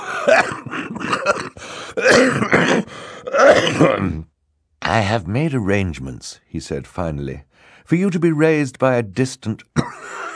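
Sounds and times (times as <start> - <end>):
brief fit of coughing: 0.0 - 4.3, 9.8 - 10.3
speech: 0.2 - 1.5, 2.2 - 4.3, 4.9 - 10.0.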